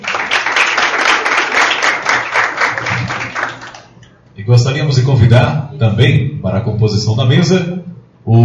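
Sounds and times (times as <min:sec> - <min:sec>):
audience applause: 0:00.0 - 0:04.0
speech: 0:04.5 - 0:08.4.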